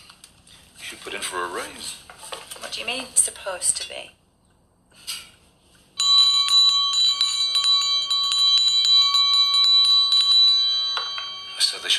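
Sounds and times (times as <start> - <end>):
speech: 1.0 - 2.1, 2.8 - 4.2
front door bell ringing: 6.0 - 11.9.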